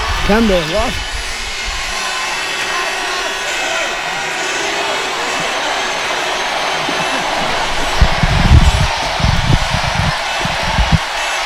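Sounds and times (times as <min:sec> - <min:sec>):
large crowd roaring and cheering: 0:00.0 - 0:11.4
speech: 0:00.3 - 0:01.2
laughter: 0:02.0 - 0:11.4.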